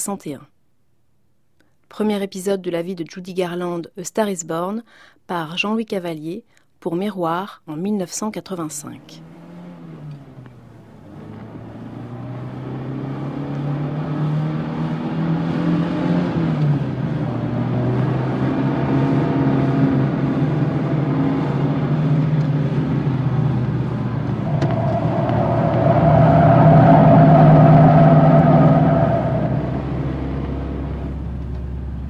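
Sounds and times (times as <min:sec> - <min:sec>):
speech: 0:00.0 - 0:00.6, 0:01.9 - 0:09.4
limousine speeding away: 0:09.2 - 0:32.0.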